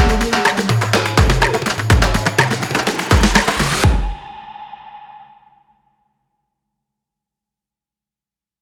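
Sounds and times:
jungle drums: 0.0s - 5.0s.

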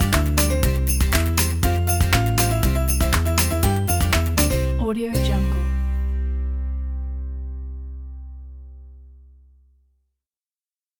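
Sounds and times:
happy Christmas song: 0.0s - 8.3s.

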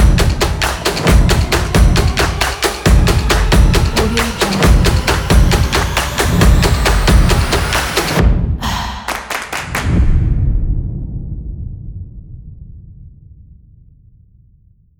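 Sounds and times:
action sport upbeat percussion: 0.0s - 10.0s.

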